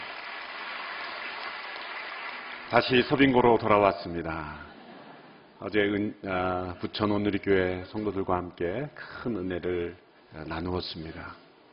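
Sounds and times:
audience applause: 0.0s - 3.3s
speech: 2.7s - 4.7s, 5.6s - 11.4s.

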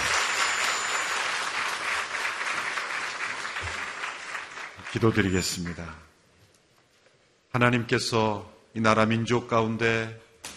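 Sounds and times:
audience applause: 0.0s - 5.8s
speech: 4.9s - 6.1s, 7.6s - 10.2s.

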